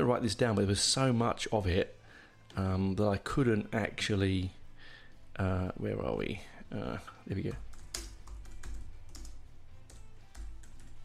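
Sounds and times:
speech: 0.0 - 4.6, 5.4 - 7.7
typing on a computer keyboard: 7.6 - 11.0.

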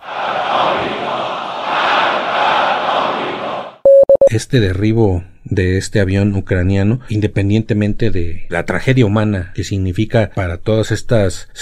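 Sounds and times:
crowd shouting chants: 0.0 - 3.8
speech: 4.3 - 11.5.

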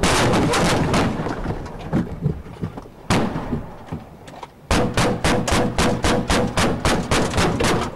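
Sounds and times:
gunfire during police ambush: 0.0 - 1.6, 3.1 - 3.9, 4.7 - 7.9.

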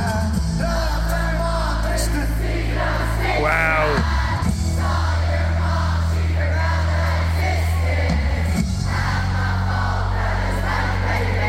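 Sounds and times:
huge concert crowd singing along and cheering: 0.0 - 11.4.

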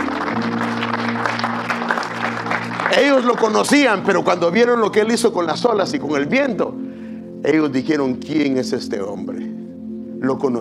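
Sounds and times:
audience applauding: 0.0 - 4.8
speech: 0.4 - 1.6, 2.9 - 6.8, 7.4 - 9.6, 10.2 - 10.5.

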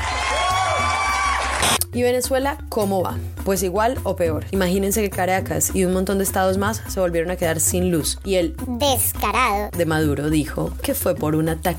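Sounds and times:
applause and cheering effect: 0.0 - 1.8
speech: 2.0 - 11.7.

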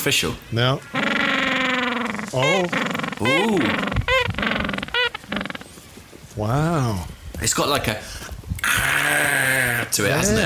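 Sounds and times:
speech: 0.0 - 1.1, 2.3 - 4.6, 6.4 - 10.4
penguin call: 0.8 - 5.8, 8.6 - 10.3.

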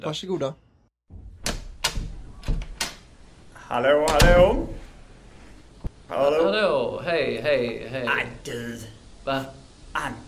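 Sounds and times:
speech: 0.0 - 0.7, 3.7 - 4.8, 6.1 - 10.2
door opening as someone enters a villa: 1.1 - 3.0, 4.0 - 4.8.

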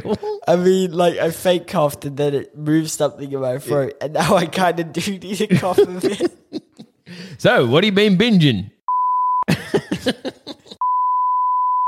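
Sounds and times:
laughter: 0.0 - 0.6, 5.4 - 7.1, 9.5 - 10.8
speech: 0.0 - 6.5, 7.1 - 8.8, 10.0 - 10.5
censor bleep tone: 8.9 - 9.5, 10.8 - 11.8.

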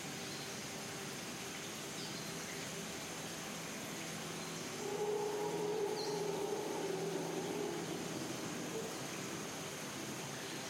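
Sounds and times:
rainforest dense rush like falling water: 0.0 - 10.6.

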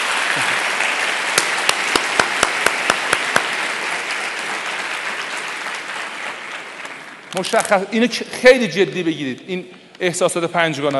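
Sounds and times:
audience applause in honour of the women: 0.0 - 7.9
speech: 0.4 - 0.6, 7.3 - 10.9
sharp evenly spaced loud claps: 0.4 - 7.8.

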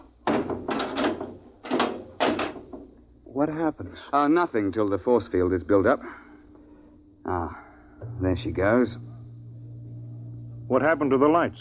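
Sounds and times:
hatch slamming shut before departure: 0.2 - 3.0
speech: 3.4 - 6.2, 7.3 - 9.1, 10.7 - 11.5.

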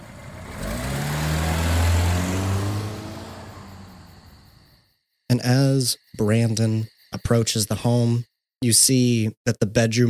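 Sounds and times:
old Pontiac car engine drone while driving: 0.0 - 4.8
speech: 5.3 - 10.0.

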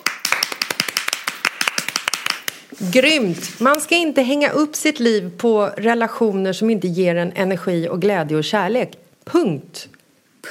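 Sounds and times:
applause from a small group: 0.0 - 2.7
speech: 2.8 - 10.4.

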